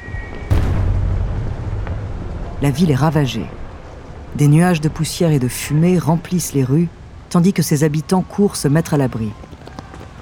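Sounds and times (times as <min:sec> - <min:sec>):
incendiary bombs exploding: 0:00.3 - 0:05.0
speech: 0:02.6 - 0:03.6, 0:04.4 - 0:09.5.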